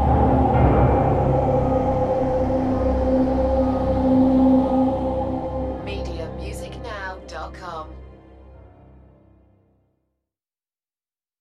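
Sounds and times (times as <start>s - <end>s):
dark production texture: 0.0s - 8.9s.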